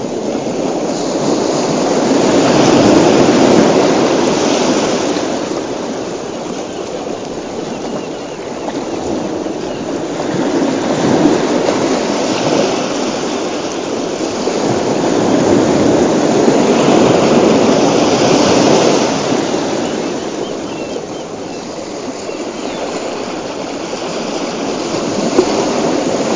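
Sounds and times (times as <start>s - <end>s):
relaxing ocean sounds: 0.0s - 26.3s.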